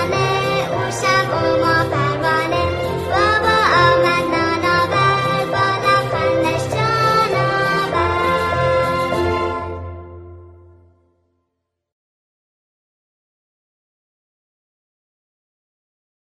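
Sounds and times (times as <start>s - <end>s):
happy children's song: 0.0s - 10.7s.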